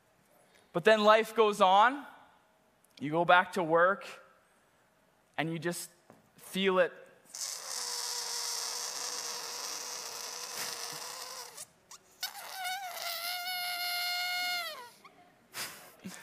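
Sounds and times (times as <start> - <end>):
speech: 0.7 - 2.1, 3.0 - 4.2, 5.4 - 7.5
raspberry blown with the lips: 7.3 - 15.1.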